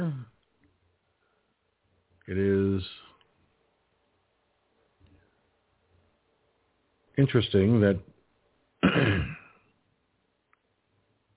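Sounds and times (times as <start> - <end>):
speech: 2.3 - 3.0, 7.2 - 8.2
choking cough and throat clearing: 8.8 - 9.6.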